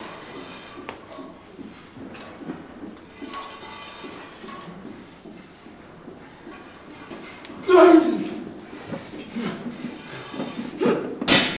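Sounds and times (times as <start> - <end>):
gym weight room ambience: 0.0 - 11.5
person grunting in a gym: 7.6 - 8.4.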